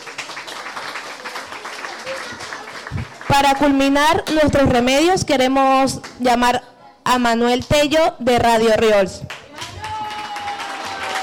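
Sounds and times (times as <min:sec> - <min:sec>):
crowd applauding: 0:00.0 - 0:03.8, 0:09.3 - 0:11.2
speech: 0:03.3 - 0:09.3.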